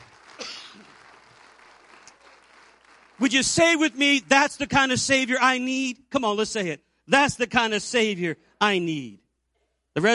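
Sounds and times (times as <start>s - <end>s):
audience clapping hands: 0.0s - 5.2s
speech: 3.2s - 9.2s, 10.0s - 10.1s.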